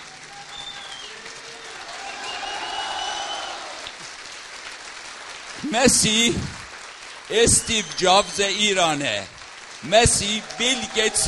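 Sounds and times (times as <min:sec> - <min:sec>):
standing audience applauding: 0:00.0 - 0:11.2
speech: 0:05.6 - 0:06.6, 0:07.3 - 0:11.2.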